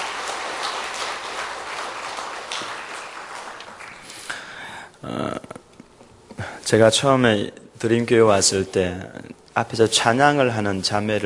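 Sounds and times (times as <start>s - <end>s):
audience applauding: 0.0s - 4.6s
speech: 5.0s - 5.4s, 6.7s - 11.2s.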